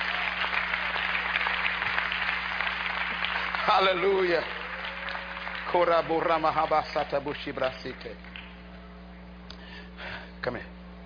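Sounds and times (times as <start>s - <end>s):
audience clapping: 0.0s - 8.7s
speech: 3.7s - 4.6s, 5.7s - 8.3s, 10.4s - 10.8s.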